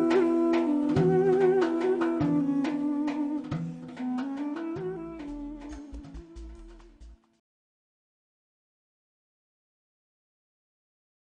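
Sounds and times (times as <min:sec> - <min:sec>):
Armenian duduk melody: 0:00.0 - 0:07.2.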